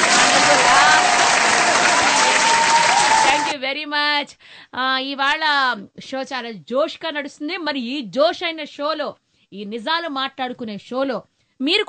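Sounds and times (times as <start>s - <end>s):
audience applause during a Telugu talk show: 0.0s - 3.6s
speech: 4.2s - 11.8s.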